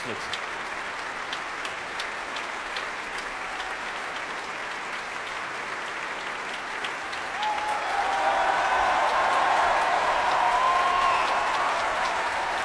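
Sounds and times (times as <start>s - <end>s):
audience applause: 0.0s - 12.6s
audience cheering: 6.8s - 12.6s.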